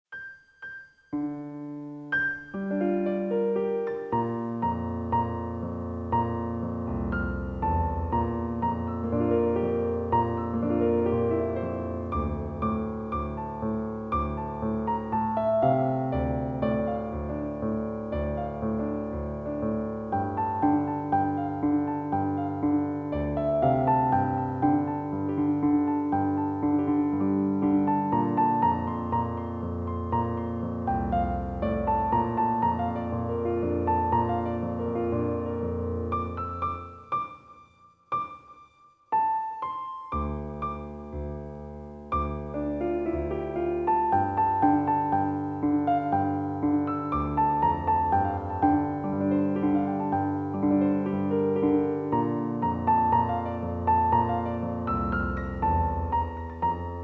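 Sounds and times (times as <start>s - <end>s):
piano: 0.0s - 57.0s.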